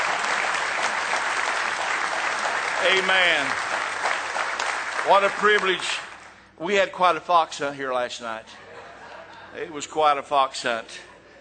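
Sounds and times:
audience hand clapping: 0.0 - 6.5
speech: 2.8 - 3.8, 5.0 - 6.0, 6.6 - 8.6, 9.5 - 11.1
laughter: 8.5 - 9.8.

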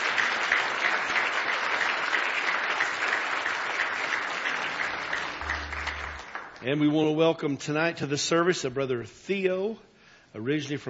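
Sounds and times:
audience applause at a church service: 0.0 - 6.6
speech: 6.6 - 10.8.

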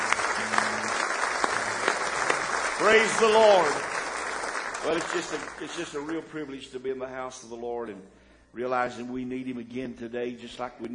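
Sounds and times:
church congregation clapping hands in praise during a morning service: 0.0 - 6.8
speech: 2.8 - 3.9, 4.8 - 10.9.

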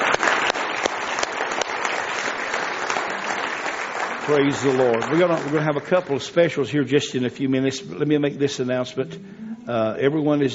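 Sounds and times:
audience applauding visitors at an evening church service: 0.0 - 6.5
speech: 4.3 - 10.5.

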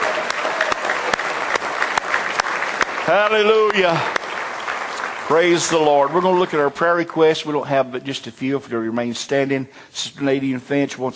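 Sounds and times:
audience clapping hands in praise: 0.0 - 7.6
speech: 3.1 - 4.2, 5.3 - 11.1.

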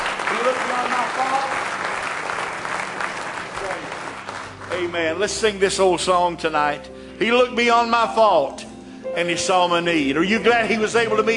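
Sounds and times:
audience clapping: 0.0 - 5.8
speech: 4.8 - 11.3.

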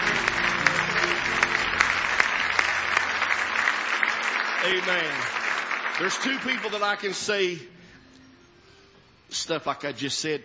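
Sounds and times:
audience hand clapping: 0.0 - 7.3
speech: 4.6 - 5.4, 6.0 - 7.7, 9.3 - 10.4.

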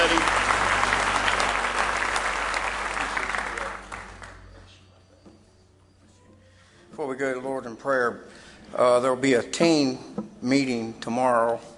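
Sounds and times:
audience applause: 0.0 - 4.7
speech: 7.2 - 11.7.

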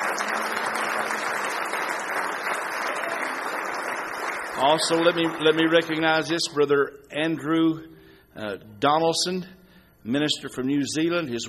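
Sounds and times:
church congregation applauding to welcome visitors to a morning service: 0.0 - 6.1
speech: 4.6 - 11.4.

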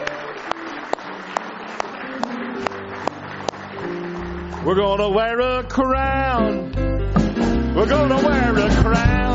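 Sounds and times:
audience clapping hands: 0.0 - 5.8
speech: 4.6 - 6.8, 7.8 - 9.2.

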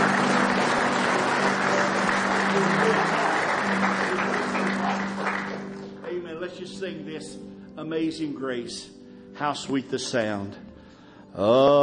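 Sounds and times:
audience clapping hands in praise: 0.0 - 6.4
speech: 6.8 - 10.7, 11.3 - 11.8.

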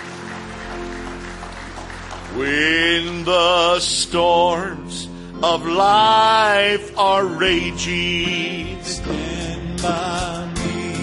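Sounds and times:
church congregation clapping in praise during a worship service: 0.0 - 4.7
speech: 2.3 - 10.5.

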